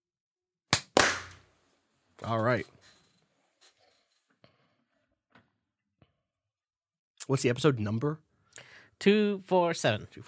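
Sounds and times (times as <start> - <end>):
sharp hand claps for audio sync: 0.7 - 1.5
speech: 2.2 - 2.8, 7.3 - 8.3, 9.0 - 10.2.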